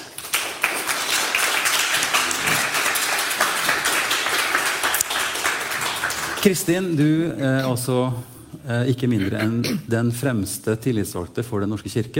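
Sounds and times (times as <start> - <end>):
audience applause: 0.0 - 7.0
speech: 6.4 - 12.1.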